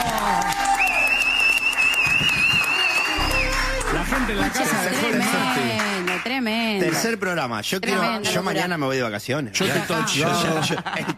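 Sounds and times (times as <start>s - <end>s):
audience applause: 0.0s - 7.2s
speech: 7.0s - 11.1s
laughter: 9.6s - 11.1s.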